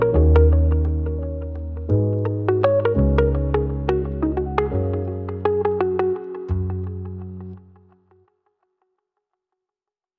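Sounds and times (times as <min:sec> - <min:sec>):
dreamy floating relaxing lofi music: 0:00.0 - 0:07.4.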